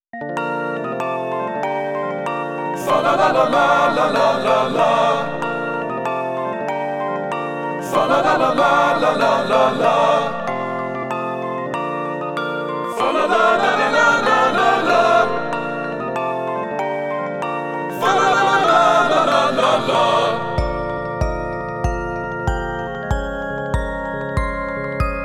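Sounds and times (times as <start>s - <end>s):
instrumental music: 0.2s - 25.2s.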